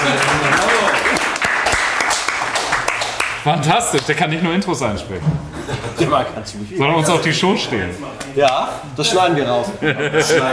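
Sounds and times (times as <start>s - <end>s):
audience applause: 0.0s - 3.6s
speech: 3.4s - 10.5s
laughter: 5.4s - 6.4s, 9.4s - 10.5s.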